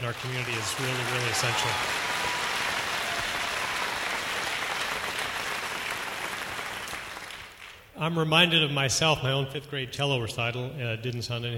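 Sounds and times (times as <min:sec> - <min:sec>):
audience applause: 0:00.0 - 0:07.8
speech: 0:00.1 - 0:02.1, 0:08.0 - 0:11.5.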